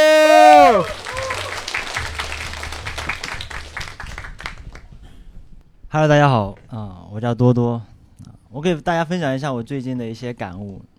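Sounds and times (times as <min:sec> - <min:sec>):
audience applause: 0:00.0 - 0:04.9
speech: 0:05.9 - 0:10.9.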